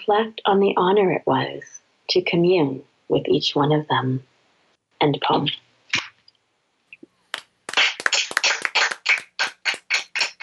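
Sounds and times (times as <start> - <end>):
speech: 0.0 - 4.3, 5.0 - 5.7
small group hand clapping: 7.3 - 10.4.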